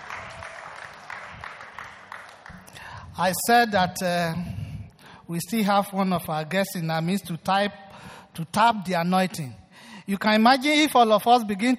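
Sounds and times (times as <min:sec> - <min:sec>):
audience applause: 0:00.0 - 0:02.8
speech: 0:03.2 - 0:04.6, 0:05.3 - 0:11.7.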